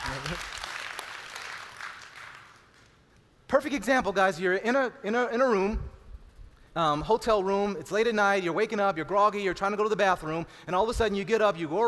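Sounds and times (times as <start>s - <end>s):
audience applause: 0.0s - 2.9s
speech: 3.5s - 5.9s, 6.8s - 11.8s.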